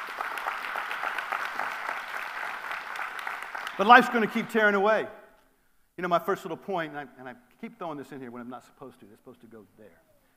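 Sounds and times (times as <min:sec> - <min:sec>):
audience applause: 0:00.0 - 0:04.6
speech: 0:03.8 - 0:05.2, 0:06.0 - 0:10.1.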